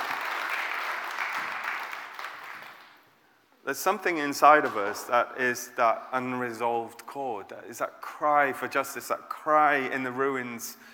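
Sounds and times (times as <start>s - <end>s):
round of applause from a crowd: 0.0s - 3.0s
speech: 3.7s - 10.9s.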